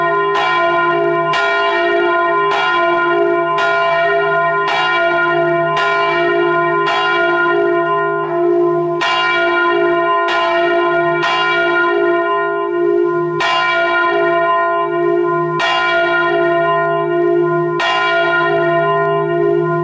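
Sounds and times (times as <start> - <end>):
church bell in F1: 0.0 - 19.8.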